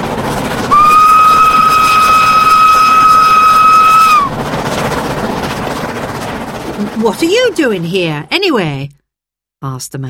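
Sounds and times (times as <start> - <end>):
train rumbling past: 0.0 - 8.8
train whistle: 0.7 - 4.4
speech: 7.0 - 9.0, 9.6 - 10.0.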